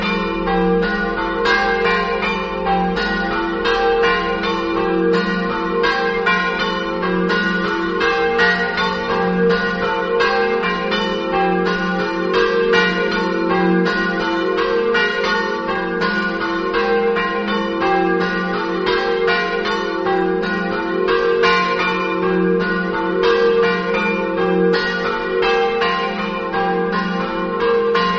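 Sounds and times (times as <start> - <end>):
bells in Felettis: 0.0 - 28.1.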